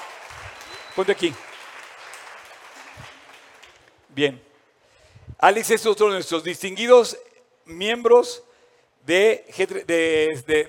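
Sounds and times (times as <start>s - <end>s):
crowd applause: 0.0s - 4.0s
speech: 1.0s - 1.5s, 4.2s - 4.5s, 5.4s - 10.6s.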